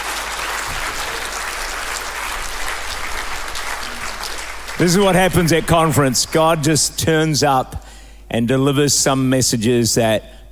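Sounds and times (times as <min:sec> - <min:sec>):
audience clapping: 0:00.0 - 0:06.9
speech: 0:04.8 - 0:10.4.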